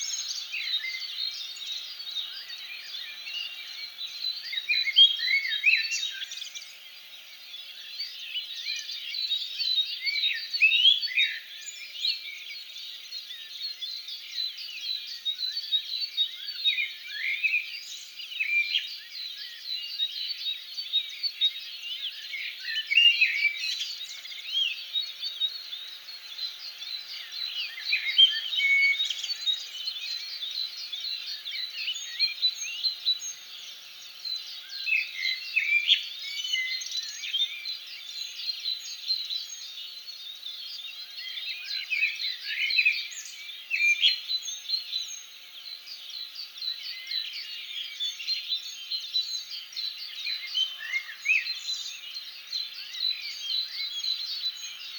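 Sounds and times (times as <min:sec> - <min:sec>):
birds: 0:00.0 - 0:54.9.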